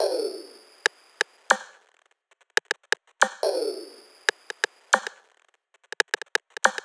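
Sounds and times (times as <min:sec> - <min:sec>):
dubstep percussion loop: 0:00.0 - 0:01.8, 0:02.6 - 0:05.2, 0:06.0 - 0:06.8.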